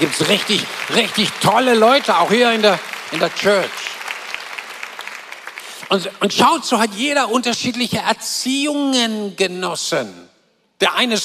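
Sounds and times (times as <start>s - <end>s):
speech: 0.0s - 3.8s, 5.9s - 11.2s
room full of people clapping: 0.0s - 6.9s.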